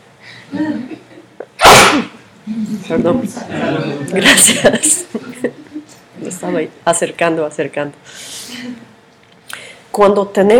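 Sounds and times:
speech: 0.5s - 1.0s, 2.8s - 8.9s, 10.0s - 10.5s
sneeze: 1.6s - 2.2s
laughter: 2.5s - 6.0s.

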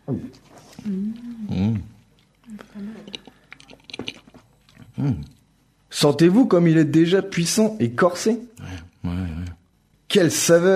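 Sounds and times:
speech: 0.1s - 1.6s, 6.0s - 8.6s, 10.1s - 10.7s
person sipping wine: 0.6s - 5.5s.

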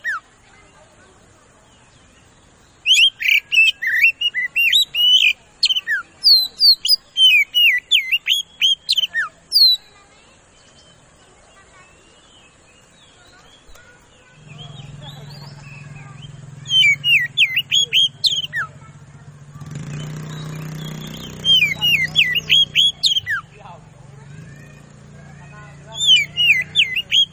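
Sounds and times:
Oriental magpie-robin singing fast loud whistled lure song: 2.8s - 10.0s, 14.6s - 18.8s, 19.7s - 23.5s, 25.8s - 27.3s.

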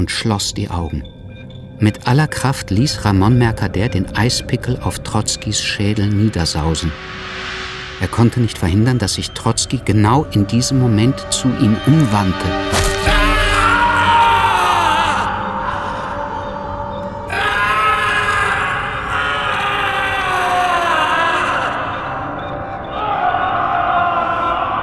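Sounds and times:
speech: 0.0s - 1.2s, 1.8s - 12.8s
scream of terror and pain: 12.6s - 24.8s.

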